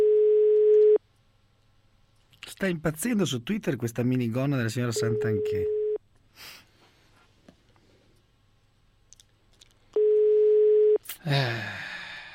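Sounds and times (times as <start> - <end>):
phone ringing tone, call not answered: 0.0 - 1.0, 5.0 - 6.0, 10.0 - 11.0
speech: 2.6 - 5.8, 11.2 - 11.8.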